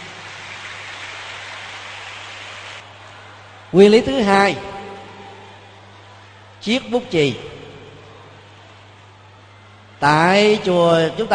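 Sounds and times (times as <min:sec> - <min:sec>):
children applauding: 0:00.0 - 0:03.7
speech: 0:03.7 - 0:04.7, 0:06.6 - 0:07.5, 0:10.0 - 0:11.3.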